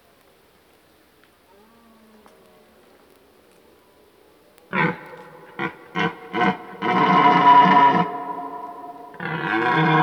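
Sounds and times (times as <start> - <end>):
red deer stag calling with grunts and roar: 4.7 - 10.0.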